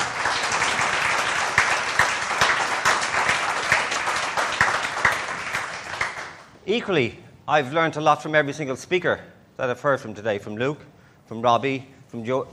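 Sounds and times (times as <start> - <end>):
audience applause: 0.0 - 6.5
speech: 6.7 - 12.5.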